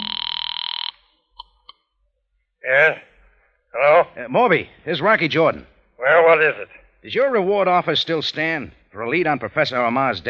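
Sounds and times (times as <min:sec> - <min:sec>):
telephone ringing, radio drama sound effect: 0:00.0 - 0:01.0
faint blips: 0:00.0 - 0:01.7
speech: 0:02.7 - 0:03.1, 0:03.8 - 0:10.2.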